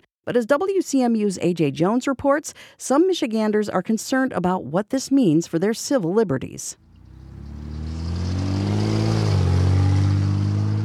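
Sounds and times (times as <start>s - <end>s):
speech: 0.2s - 6.8s
cars passing at busy intersection in downtown Saginaw: 6.8s - 10.8s.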